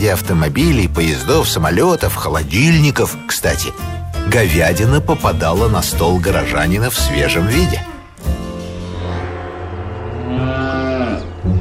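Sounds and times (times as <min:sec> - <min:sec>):
speech: 0:00.0 - 0:07.8
cattle mooing: 0:08.9 - 0:11.5.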